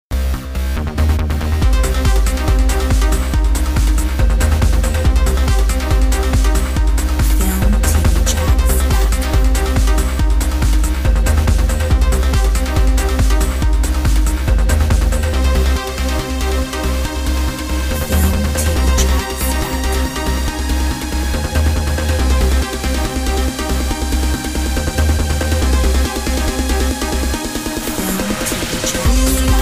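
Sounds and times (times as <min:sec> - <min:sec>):
techno trip music: 0:00.1 - 0:29.6.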